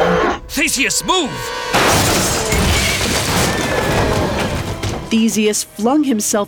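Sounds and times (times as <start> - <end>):
speech: 0.5 - 2.9, 5.1 - 6.4
splintering crash of bull bursting from cage: 1.7 - 5.3.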